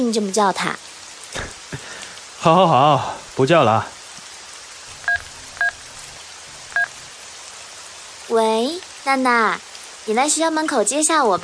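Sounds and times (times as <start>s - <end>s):
speech: 0.0s - 0.9s, 2.4s - 4.0s, 8.3s - 11.4s
steady hiss of rain: 0.0s - 11.4s
telephone keypad dialing tones: 5.0s - 5.8s, 6.7s - 7.0s.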